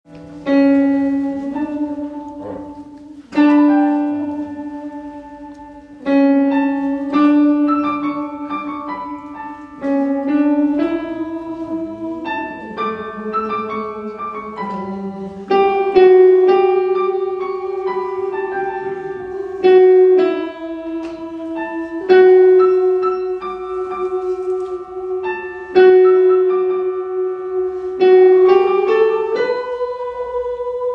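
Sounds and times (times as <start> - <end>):
oboe: 0.1 - 30.9.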